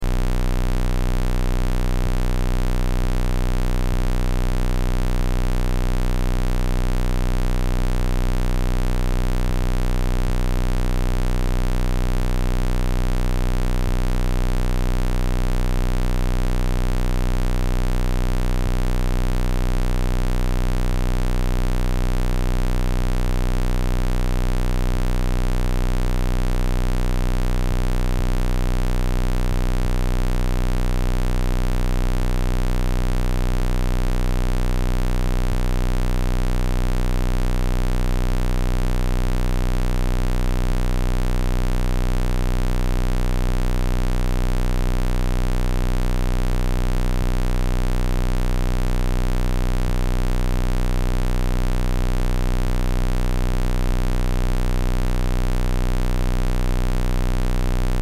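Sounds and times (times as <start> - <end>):
square wave test tone: 0.0 - 58.0.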